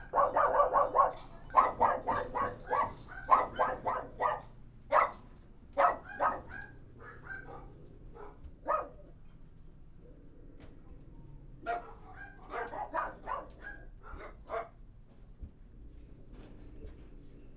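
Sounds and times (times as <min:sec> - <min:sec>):
several dogs barking: 0:00.0 - 0:05.2, 0:05.8 - 0:09.1, 0:11.6 - 0:14.8.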